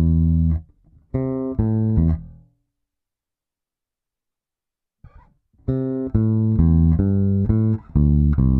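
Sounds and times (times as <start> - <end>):
bass line in A with triplet raking: 0.0 - 2.3, 5.7 - 8.5.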